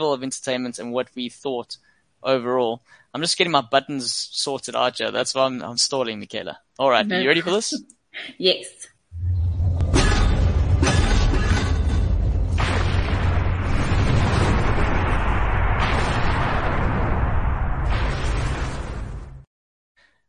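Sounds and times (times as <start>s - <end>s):
speech: 0.0s - 8.9s
storm roar with deep rumbling: 9.2s - 19.4s
thunder-like cracks: 9.2s - 19.5s.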